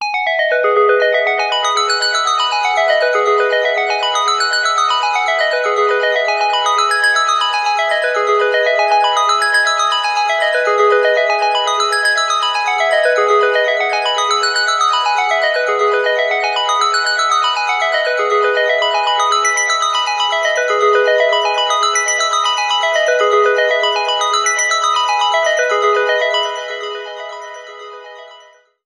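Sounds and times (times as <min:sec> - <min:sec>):
ringing arpeggio: 0:00.1 - 0:28.4.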